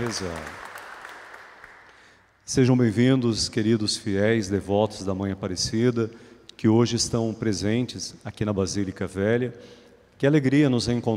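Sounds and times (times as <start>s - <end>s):
speech: 0.0s - 0.6s, 2.5s - 11.1s
audience applause: 0.0s - 2.0s.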